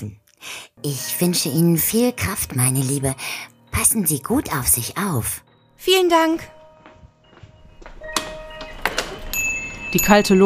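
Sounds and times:
speech: 0.0 - 0.2, 0.8 - 6.6, 9.9 - 10.4
small shop door bell ringing: 5.8 - 10.4
door closing: 7.4 - 9.9.

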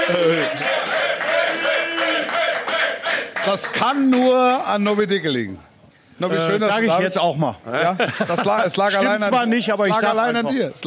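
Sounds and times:
applause from the stands: 0.0 - 5.2
speech: 0.1 - 0.8, 3.5 - 10.8
laughter: 7.7 - 9.3.

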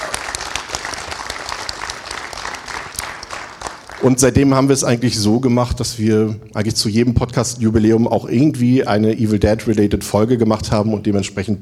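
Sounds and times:
crowd applause: 0.0 - 4.3
speech: 4.0 - 11.5.

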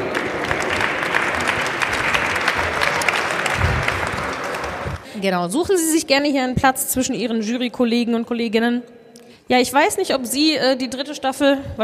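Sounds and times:
audience applause: 0.0 - 5.0
speech: 5.2 - 11.8.

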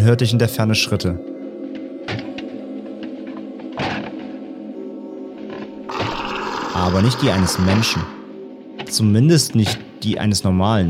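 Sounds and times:
speech: 0.0 - 1.4, 6.8 - 8.2, 8.9 - 10.8
gurgling growl like an angry animal: 5.9 - 8.3.

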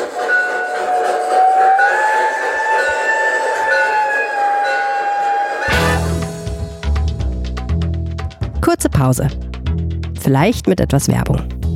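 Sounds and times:
train-like rumble: 0.0 - 8.4
whistle-like tone: 0.2 - 6.2
bell clanging: 1.8 - 7.1
speech: 9.0 - 9.4, 10.3 - 11.6.

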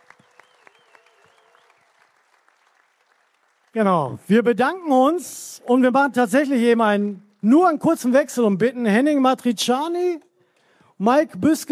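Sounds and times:
audience applause: 0.0 - 4.2
speech: 3.8 - 10.3, 11.0 - 11.6.

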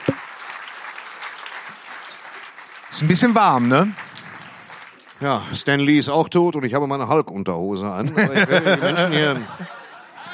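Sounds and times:
audience applause in a tribute to the late SpongeBob creator: 0.0 - 5.5
speech: 3.0 - 4.0, 5.2 - 9.8
laughter: 8.0 - 10.3.

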